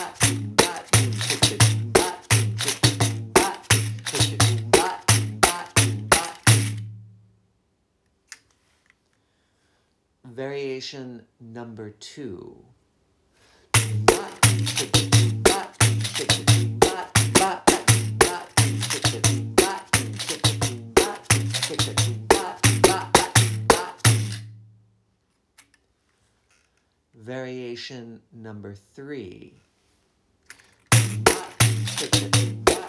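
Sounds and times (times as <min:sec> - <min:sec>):
pandeiro rhythm variations for capoeira music: 0:00.0 - 0:07.2, 0:13.8 - 0:24.7, 0:30.9 - 0:32.8.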